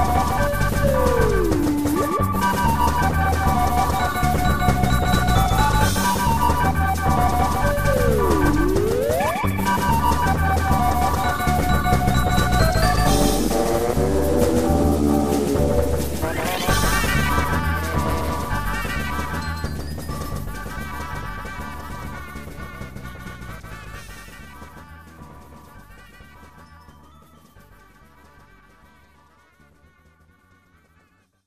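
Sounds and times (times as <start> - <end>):
fight music: 0.0 - 21.9.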